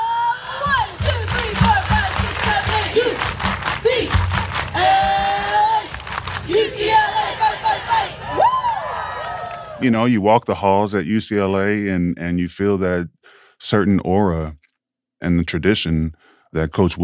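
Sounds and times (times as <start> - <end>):
crowd doing a rhythmic team clap chant: 0.5 - 9.8
speech: 9.8 - 14.6, 15.2 - 17.0.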